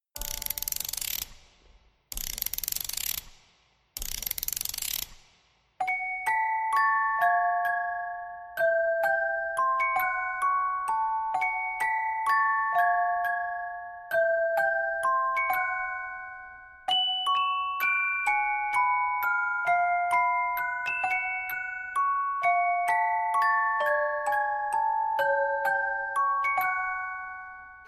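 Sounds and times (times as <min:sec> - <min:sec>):
carillon bells: 0:05.8 - 0:27.8.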